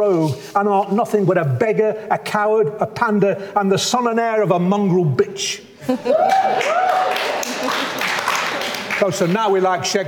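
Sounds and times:
speech: 0.0s - 7.0s, 9.0s - 10.0s
applause: 6.2s - 9.4s.

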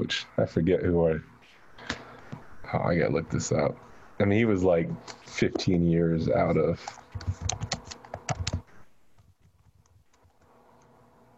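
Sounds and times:
speech: 0.0s - 1.9s, 2.7s - 7.5s
typing a Google search on a computer keyboard: 6.9s - 8.7s.

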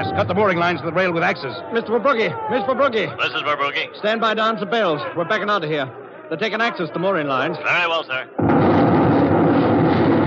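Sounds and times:
speech: 0.0s - 8.9s
huge battleship explosion: 8.4s - 10.2s.

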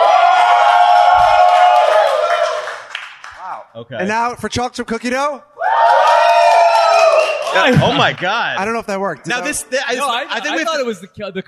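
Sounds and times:
crowd cheering: 0.0s - 3.7s, 5.6s - 10.6s
speech: 3.8s - 6.2s, 7.6s - 11.4s.

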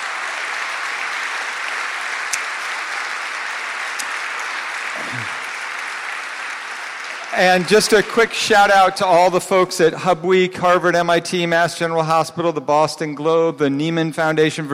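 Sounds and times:
audience applause: 0.0s - 9.7s
speech: 7.3s - 14.7s.

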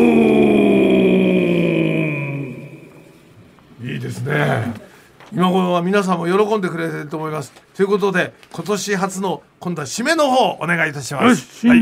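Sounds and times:
deep shouted voice with heavy echo effect: 0.0s - 3.0s
speech: 5.3s - 11.8s.

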